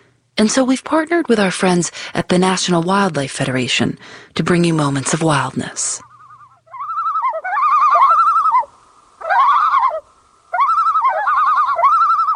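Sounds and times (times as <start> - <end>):
speech: 0.4 - 6.1
common loon calling: 6.0 - 12.3.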